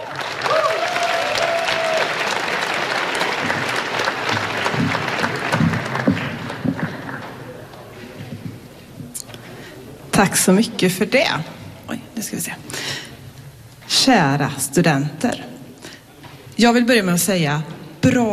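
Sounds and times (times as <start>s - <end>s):
audience clapping: 0.0s - 8.4s
low murmuring: 2.6s - 13.8s
speech: 10.2s - 11.6s, 14.0s - 15.5s, 16.6s - 18.3s.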